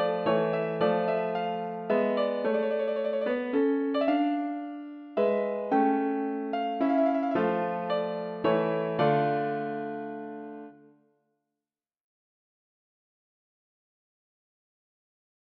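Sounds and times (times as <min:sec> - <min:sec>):
piano minuet: 0:00.0 - 0:10.9.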